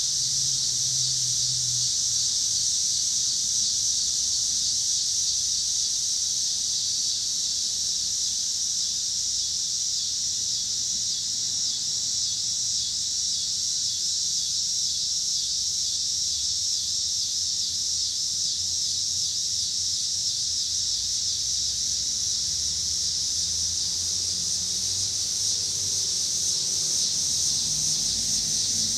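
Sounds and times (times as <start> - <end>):
low traffic noise: 0.0 - 8.2, 20.8 - 28.9
cicada chorus buzzing: 0.0 - 28.9.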